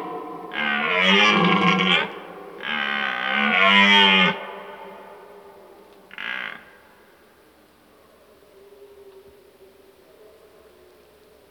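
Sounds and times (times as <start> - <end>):
red deer bellowing: 0.0 - 4.9.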